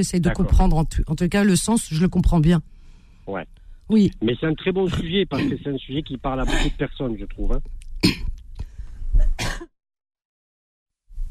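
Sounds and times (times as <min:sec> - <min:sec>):
speech: 0:00.0 - 0:02.7, 0:03.3 - 0:08.4
person coughing and clearing the throat: 0:04.9 - 0:05.7, 0:06.4 - 0:06.8, 0:08.0 - 0:08.3, 0:09.2 - 0:09.7.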